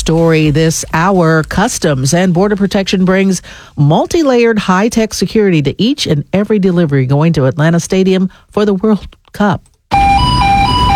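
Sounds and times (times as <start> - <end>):
speech: 0.1 - 10.0
steady electronic tone of a Customs and Border Protection X-ray scanner: 9.9 - 10.9.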